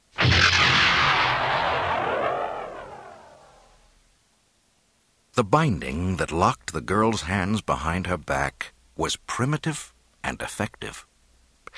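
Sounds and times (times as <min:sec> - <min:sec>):
explosive latches firing with a blast: 0:00.1 - 0:03.7
roaring swirling whoosh of escape pod ejecting: 0:00.4 - 0:03.7
speech: 0:05.4 - 0:11.1.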